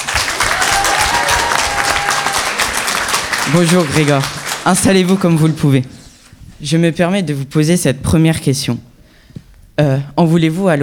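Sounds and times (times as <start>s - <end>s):
large audience applause: 0.0s - 5.9s
speech: 3.5s - 6.0s, 6.6s - 8.9s, 9.8s - 10.8s.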